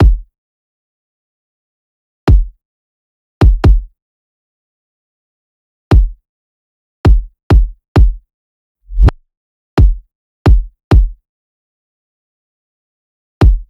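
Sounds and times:
kick drum loop at 132 bpm: 0.0s - 0.2s, 2.3s - 2.5s, 3.4s - 3.9s, 5.9s - 6.2s, 7.1s - 8.2s, 9.8s - 11.2s, 13.4s - 13.6s.

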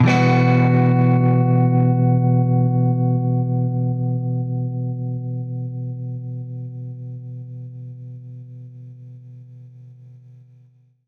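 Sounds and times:
baritone guitar E minor add9 chord: 0.0s - 6.4s.

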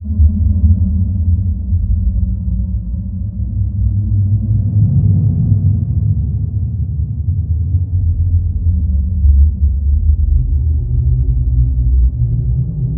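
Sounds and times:
dark low drone: 0.0s - 12.9s.

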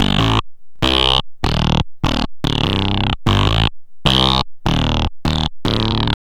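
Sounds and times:
synth bass loops: 0.0s - 6.2s.

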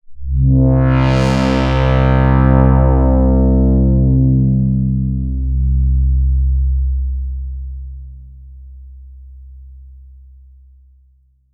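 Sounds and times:
synth pad on C2: 0.1s - 8.4s.

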